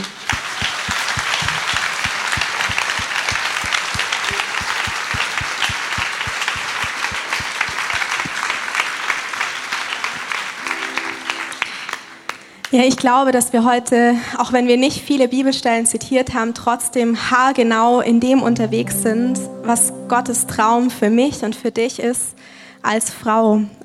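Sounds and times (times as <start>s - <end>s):
audience applause: 0.0s - 12.8s
speech: 12.8s - 23.8s.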